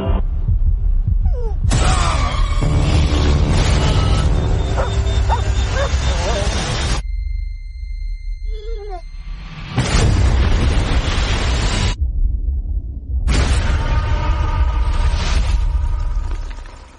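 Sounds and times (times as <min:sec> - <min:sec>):
low rumble: 0:00.0 - 0:03.9, 0:04.6 - 0:16.9
dog barking and whimpering: 0:04.8 - 0:06.8, 0:08.5 - 0:09.1.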